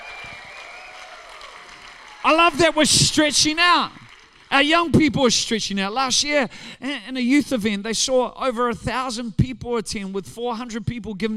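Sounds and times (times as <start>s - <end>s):
audience clapping in praise: 0.0s - 5.5s
speech: 2.2s - 11.3s.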